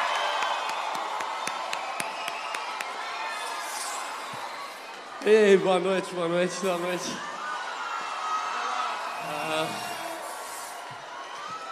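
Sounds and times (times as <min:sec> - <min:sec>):
audience applause and cheering: 0:00.0 - 0:11.7
speech: 0:05.2 - 0:07.3.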